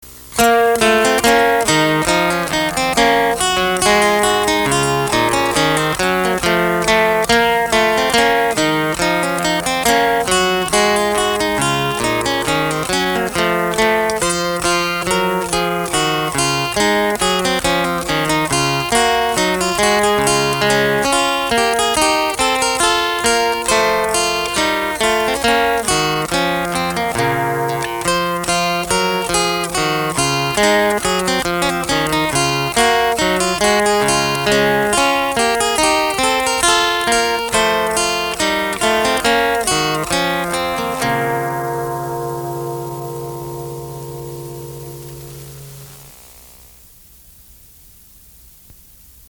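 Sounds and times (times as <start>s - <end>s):
gavotte: 0.0s - 46.7s.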